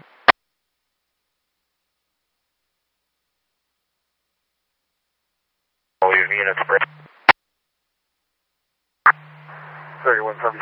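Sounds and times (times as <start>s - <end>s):
faint thin radio hiss: 0.0s - 0.3s, 6.0s - 7.4s, 9.1s - 10.6s
speech: 6.3s - 6.9s, 10.0s - 10.6s.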